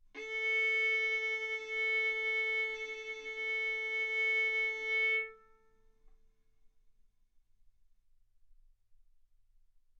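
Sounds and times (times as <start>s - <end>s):
violin bowed arco notes: 0.0s - 5.7s.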